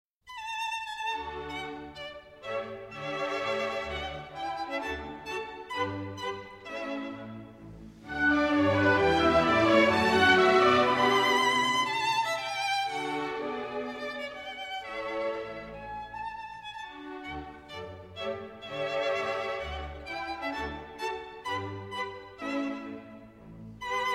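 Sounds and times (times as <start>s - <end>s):
violin concerto rondeau in D major: 0.3s - 24.1s.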